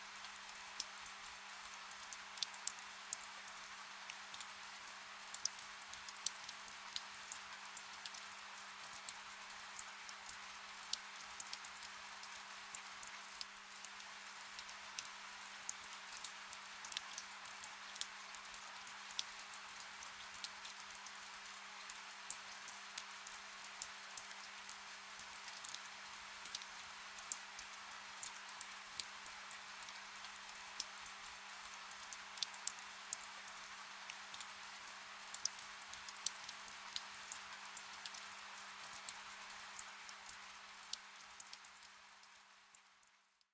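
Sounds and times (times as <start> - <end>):
rain ambience: 0.0 - 43.4.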